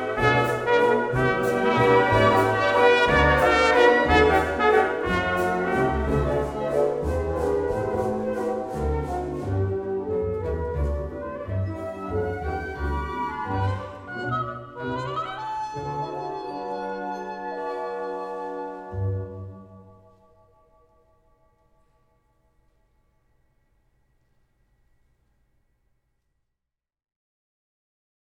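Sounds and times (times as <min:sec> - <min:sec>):
trumpet solo: 0:00.0 - 0:19.6.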